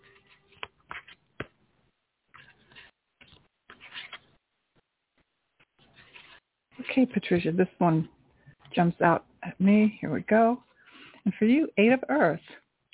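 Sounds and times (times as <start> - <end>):
Angel Tarot deck cards shuffled and handled: 0.0 - 1.6, 2.3 - 4.4, 5.2 - 6.4
speech: 6.8 - 8.2, 8.8 - 12.6.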